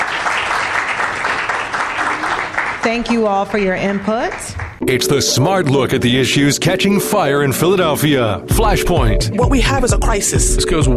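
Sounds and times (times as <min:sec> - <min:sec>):
audience applause: 0:00.0 - 0:04.8
speech: 0:02.8 - 0:10.9.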